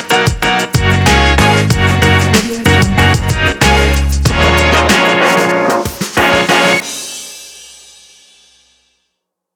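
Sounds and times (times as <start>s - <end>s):
hip hop music: 0.0s - 6.9s.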